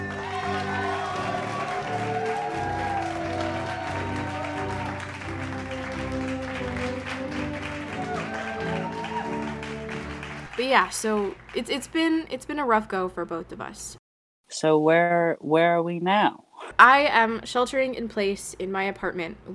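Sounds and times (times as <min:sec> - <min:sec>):
crowd applause and cheering: 0:00.0 - 0:11.8
speech: 0:10.6 - 0:19.5.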